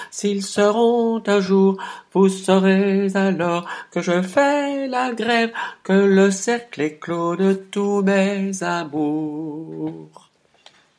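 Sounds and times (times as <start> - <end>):
person singing soprano: 0.0 - 10.3.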